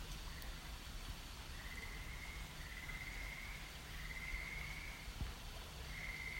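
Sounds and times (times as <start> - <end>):
frogs calling: 0.2 - 0.8, 1.4 - 5.2, 5.8 - 6.3.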